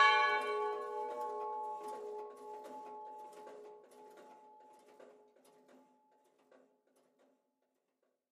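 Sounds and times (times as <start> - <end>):
church bells ringing in Oberrod: 0.0 - 5.0.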